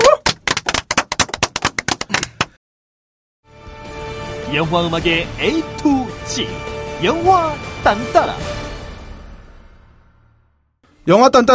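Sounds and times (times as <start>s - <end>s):
applause: 0.0s - 2.6s
speech: 4.5s - 8.6s, 11.1s - 11.5s.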